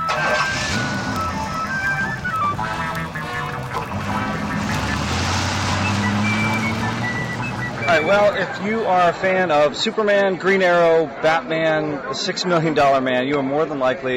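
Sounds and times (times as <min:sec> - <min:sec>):
car engine revving as vehicle drives off: 0:00.0 - 0:09.2
speech: 0:08.0 - 0:14.1.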